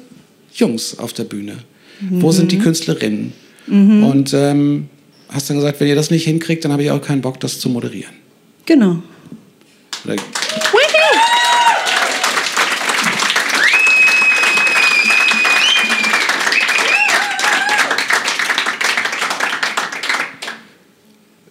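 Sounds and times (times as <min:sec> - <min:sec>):
speech: 0:00.6 - 0:09.1, 0:10.1 - 0:10.4
audience applause: 0:09.9 - 0:20.8.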